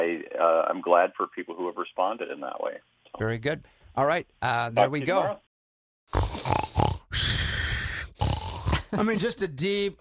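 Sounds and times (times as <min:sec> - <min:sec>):
speech: 0:00.4 - 0:05.5, 0:08.9 - 0:09.9
person imitating snoring: 0:06.1 - 0:08.9.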